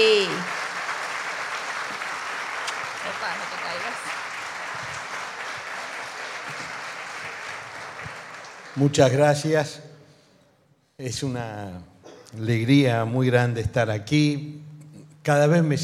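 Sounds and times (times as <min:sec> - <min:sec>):
strong audience applause: 0:00.0 - 0:09.2
speech: 0:08.8 - 0:09.9, 0:11.0 - 0:15.8.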